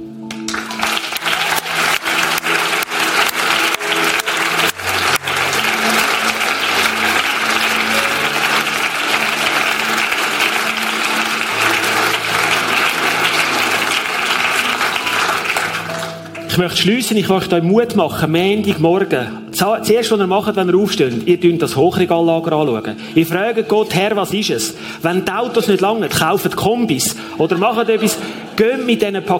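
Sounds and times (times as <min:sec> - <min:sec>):
applause: 0:00.1 - 0:16.9
speech: 0:16.6 - 0:29.3.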